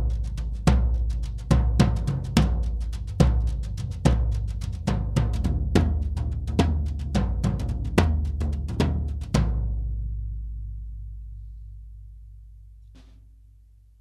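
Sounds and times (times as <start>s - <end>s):
toms played with brushes: 0.0s - 9.4s.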